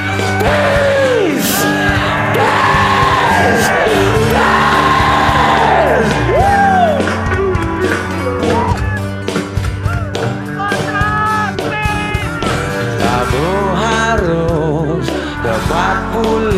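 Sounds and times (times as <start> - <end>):
large concert crowd in Bali chanting in unison: 0.0 - 8.8
backing music: 0.0 - 16.5.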